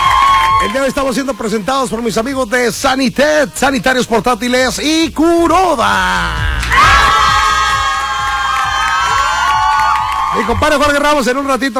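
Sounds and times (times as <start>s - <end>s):
applause: 0.0s - 0.7s, 7.7s - 11.1s
crowd cheering and shouting: 0.0s - 1.7s, 5.9s - 11.7s
speech: 0.7s - 7.2s, 10.3s - 11.7s.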